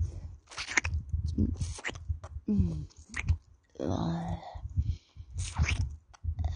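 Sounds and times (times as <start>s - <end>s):
wet mouth sounds of saliva, smacking, licking and savoring: 0.5s - 3.4s, 5.4s - 6.3s
person speaking softly: 1.2s - 6.5s.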